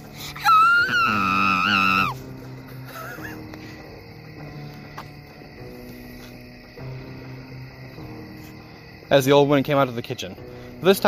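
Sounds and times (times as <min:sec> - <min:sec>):
girl screaming in horror: 0:00.2 - 0:02.2
speech: 0:09.1 - 0:11.0.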